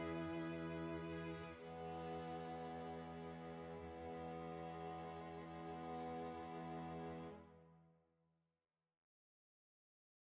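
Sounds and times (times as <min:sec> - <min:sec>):
string quartet: 0:00.0 - 0:07.6.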